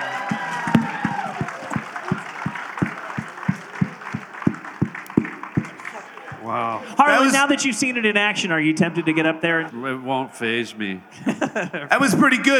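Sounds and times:
rhythmic audience clapping: 0:00.0 - 0:09.0
crowd noise: 0:00.0 - 0:12.5
laughter: 0:00.0 - 0:12.5
raised voices cheering: 0:00.0 - 0:12.5
speech: 0:07.3 - 0:12.5.

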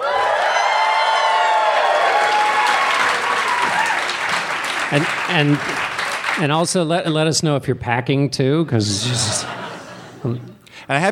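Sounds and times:
crowd cheering and whooping: 0:00.0 - 0:04.8
packed live audience applauding: 0:00.0 - 0:06.7
speech: 0:04.9 - 0:05.8, 0:06.4 - 0:09.6, 0:10.2 - 0:11.1
laughter: 0:08.7 - 0:10.6.

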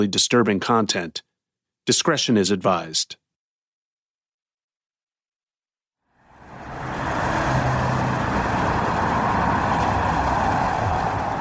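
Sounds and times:
speech: 0:00.0 - 0:03.2
street traffic at Wilcox and De Longpre corner in Hollywood: 0:06.2 - 0:11.3.

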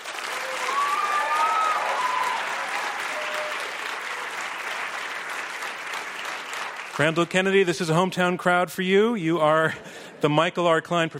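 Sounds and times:
audience applause welcoming a debater: 0:00.0 - 0:08.0
faint whistles and cheers: 0:00.3 - 0:04.5
speech: 0:07.0 - 0:11.1.

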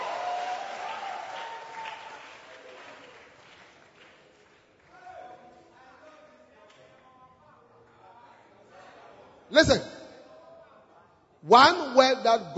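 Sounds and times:
audience clapping: 0:00.0 - 0:05.2
speech: 0:09.5 - 0:09.9, 0:11.5 - 0:12.5.

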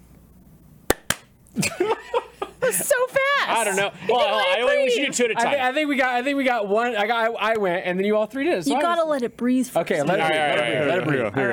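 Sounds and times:
people clapping hands: 0:00.9 - 0:01.3
voices or laughter: 0:01.6 - 0:06.4, 0:10.0 - 0:11.5
speech: 0:01.6 - 0:11.5.

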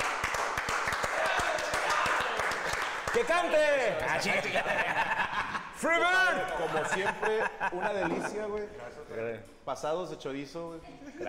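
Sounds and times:
audience applause: 0:00.0 - 0:04.4
speech: 0:03.1 - 0:05.2, 0:05.8 - 0:11.2
laughter: 0:03.7 - 0:08.9.

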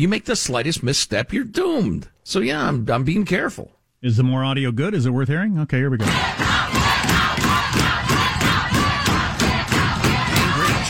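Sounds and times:
speech: 0:00.0 - 0:06.4
large crowd shouting down a speaker, chanting in unison: 0:06.0 - 0:10.8.

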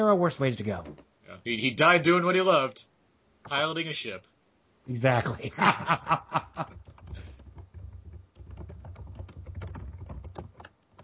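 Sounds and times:
speech: 0:00.0 - 0:07.0
laughter: 0:05.3 - 0:06.8
loud keyboard typing: 0:06.5 - 0:11.0.

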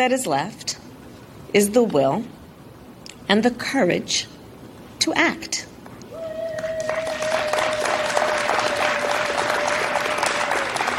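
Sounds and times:
speech: 0:00.0 - 0:00.8, 0:01.5 - 0:02.4, 0:03.3 - 0:04.3, 0:05.0 - 0:05.7
woman cheering: 0:06.1 - 0:10.9
applause: 0:06.2 - 0:10.9.

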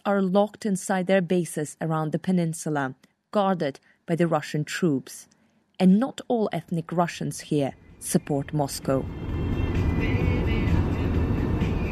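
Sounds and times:
speech: 0:00.0 - 0:09.4
car driving along a road in the coastal town of Saki in Crimea: 0:08.7 - 0:11.8.

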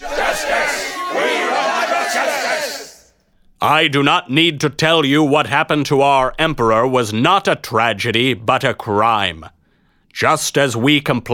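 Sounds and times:
angry army crowd growling: 0:00.0 - 0:03.1
harsh shouts from army crowd: 0:00.0 - 0:03.1
speech: 0:03.6 - 0:11.3.

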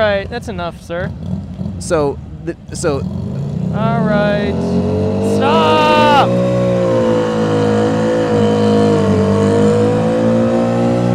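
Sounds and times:
speech: 0:00.0 - 0:06.6
car burning rubber and accelerating hard on Hollywood Boulevard: 0:02.9 - 0:11.1.

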